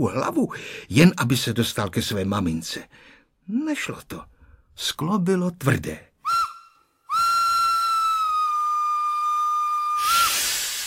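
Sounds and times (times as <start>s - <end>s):
speech: 0.0s - 6.1s
train's steam whistle as train departs: 6.3s - 10.8s
rush of hissing steam: 9.9s - 10.8s.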